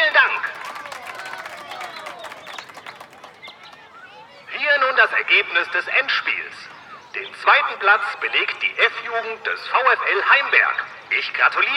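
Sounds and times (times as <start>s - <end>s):
crowd applause: 0.0s - 4.3s
murmur of voices: 0.0s - 11.7s
speech: 5.0s - 11.7s.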